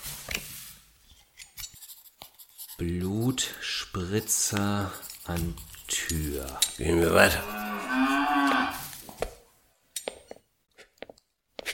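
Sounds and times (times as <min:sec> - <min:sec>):
pen writing notes on paper: 0:01.6 - 0:07.8
speech: 0:02.8 - 0:09.3.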